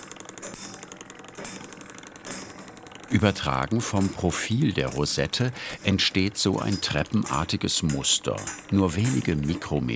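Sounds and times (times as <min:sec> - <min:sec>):
engraving machine cutting steel scraping a lacquered clock dial: 0:00.0 - 0:09.9
speech: 0:03.1 - 0:09.9.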